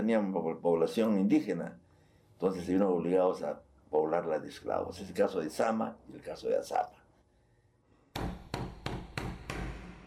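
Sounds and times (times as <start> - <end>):
speech: 0.0 - 1.8, 2.4 - 7.0
knocking on a door: 8.2 - 10.0.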